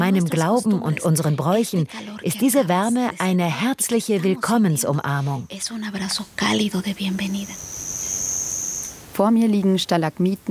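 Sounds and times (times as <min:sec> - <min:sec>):
speech: 0:00.1 - 0:07.8, 0:09.2 - 0:10.4
crickets chirping in a cave: 0:05.4 - 0:09.2.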